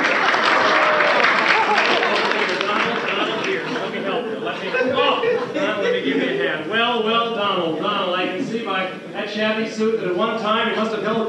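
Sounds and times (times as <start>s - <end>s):
game-show audience applause welcoming a contestant: 0.0s - 4.3s
laughter: 0.0s - 8.9s
speech: 9.3s - 11.2s.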